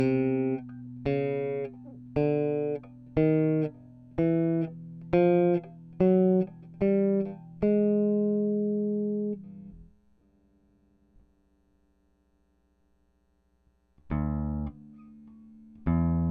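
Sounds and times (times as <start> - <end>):
bass DI through Audient iD14 interface: 0.0 - 10.0, 14.0 - 16.2.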